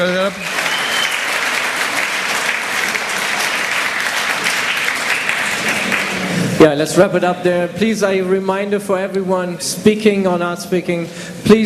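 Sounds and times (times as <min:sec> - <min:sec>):
speech: 0:00.0 - 0:00.5, 0:06.6 - 0:11.6
audience applause: 0:00.0 - 0:06.5.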